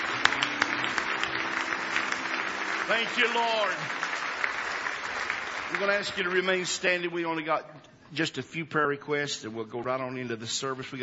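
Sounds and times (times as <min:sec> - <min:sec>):
church congregation clapping in praise: 0:00.0 - 0:07.4
speech: 0:02.9 - 0:04.0, 0:05.7 - 0:11.0.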